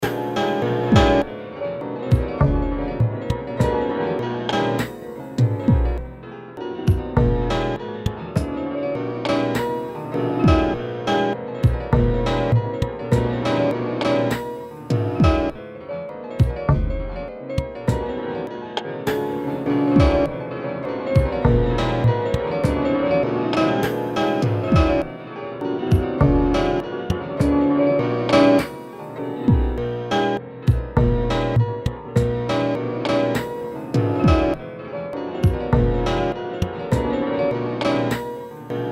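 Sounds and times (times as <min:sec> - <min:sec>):
piano: 0:00.0 - 0:38.9.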